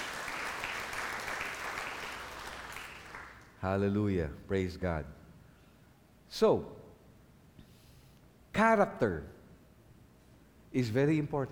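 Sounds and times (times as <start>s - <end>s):
church congregation applause praising God during a worship service: 0.0s - 3.5s
speech: 3.6s - 5.2s, 6.3s - 6.8s, 8.6s - 9.4s, 10.7s - 11.5s.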